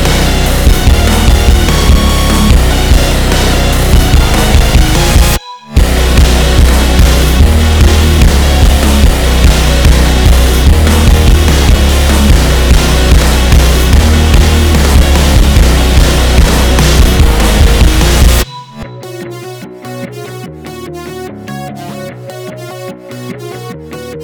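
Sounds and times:
default beat: 0:00.0 - 0:19.1.

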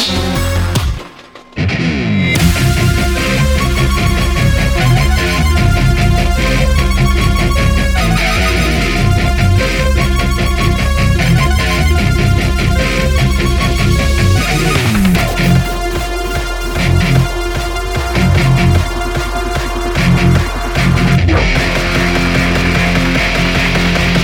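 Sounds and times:
guitar cover: 0:00.1 - 0:24.2.

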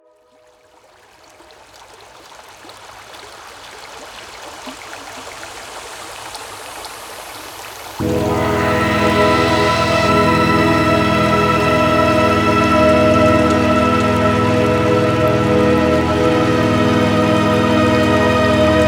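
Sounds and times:
tonal meditation: 0:08.0 - 0:18.8.

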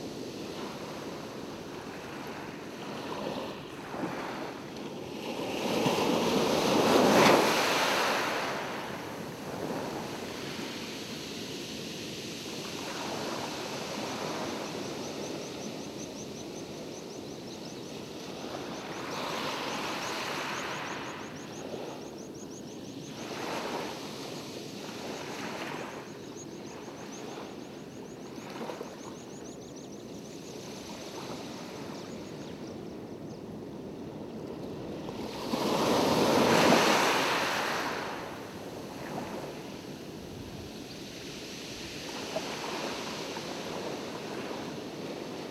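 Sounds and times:
ocean waves: 0:00.0 - 0:45.5.

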